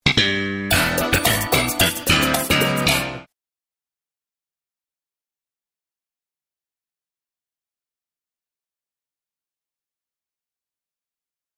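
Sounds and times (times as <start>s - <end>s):
sitcom bass riff: 0.0s - 3.3s.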